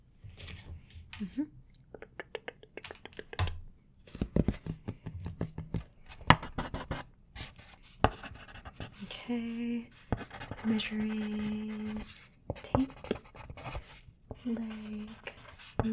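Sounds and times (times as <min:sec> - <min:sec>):
speech: 0:01.2 - 0:01.6, 0:09.3 - 0:10.0, 0:10.6 - 0:12.2, 0:14.5 - 0:15.2
person whispering: 0:01.2 - 0:03.4, 0:09.0 - 0:13.1, 0:14.4 - 0:15.9
pen scratching as notes are written in an ASMR roleplay: 0:04.4 - 0:09.2, 0:09.9 - 0:15.9.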